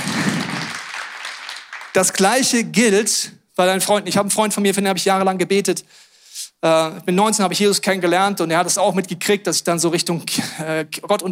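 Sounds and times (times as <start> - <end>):
crowd applauding: 0.0 - 2.6
speech: 2.0 - 11.3.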